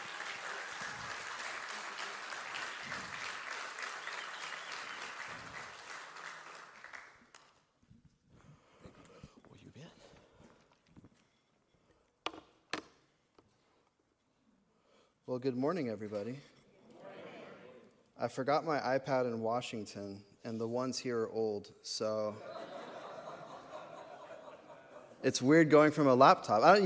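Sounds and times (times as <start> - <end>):
audience applause welcoming a guest speaker to the platform: 0.0 - 7.5
bugle call: 12.2 - 13.5
speech: 15.3 - 16.6, 18.2 - 22.6, 25.2 - 26.8
laughter: 22.3 - 25.2.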